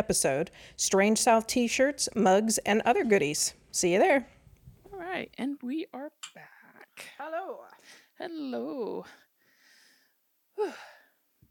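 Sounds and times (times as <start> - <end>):
speech: 0.0 - 4.4, 5.1 - 9.2, 10.6 - 10.9
deep breaths: 0.5 - 0.8, 9.1 - 11.2.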